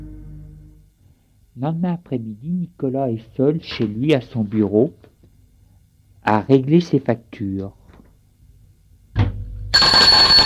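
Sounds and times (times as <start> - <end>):
speech: 1.6 - 5.1, 6.2 - 7.8
doorbell ringing: 9.8 - 10.4.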